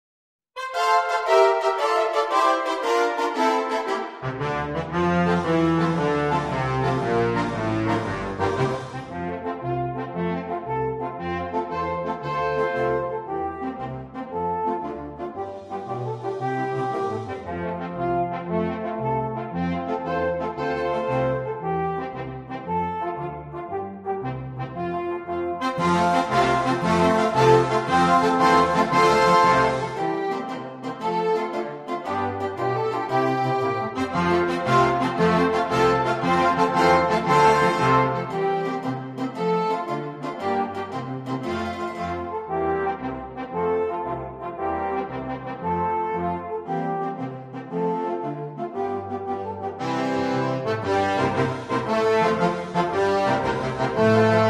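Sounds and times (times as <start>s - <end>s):
alphorn fanfare: 0.6s - 54.4s.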